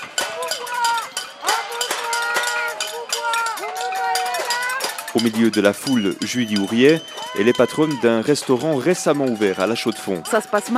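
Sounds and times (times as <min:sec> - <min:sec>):
protesters banging saucepans: 0:00.0 - 0:10.7
speech: 0:05.2 - 0:10.7.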